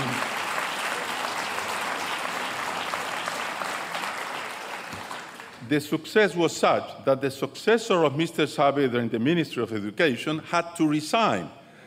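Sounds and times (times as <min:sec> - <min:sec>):
audience applause: 0:00.0 - 0:05.7
speech: 0:05.7 - 0:11.6.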